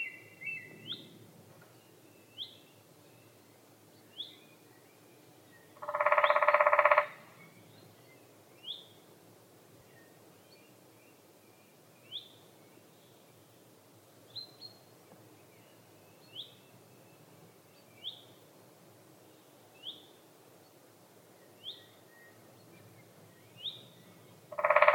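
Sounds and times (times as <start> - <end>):
lesser spotted woodpecker Dendrocopos minor calling: 5.8 - 7.3, 24.5 - 24.9.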